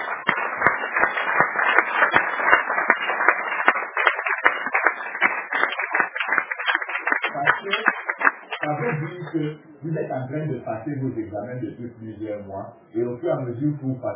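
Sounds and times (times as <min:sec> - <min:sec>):
audience clapping: 0:00.0 - 0:09.6
speech: 0:09.3 - 0:14.1.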